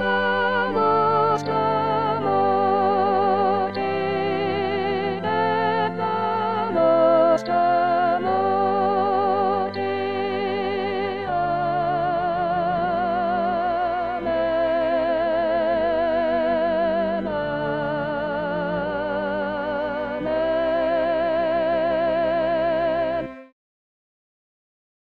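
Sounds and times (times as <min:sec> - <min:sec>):
soprano voice singing: 0:00.0 - 0:23.5.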